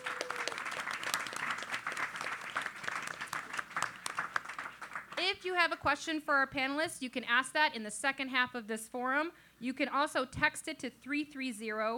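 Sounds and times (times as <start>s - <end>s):
audience applause: 0.0s - 5.2s
speech: 5.4s - 11.9s.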